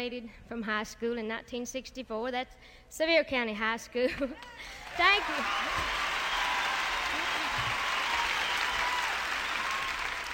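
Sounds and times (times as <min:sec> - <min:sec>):
speech: 0:00.0 - 0:06.1
audience applause: 0:04.8 - 0:10.3.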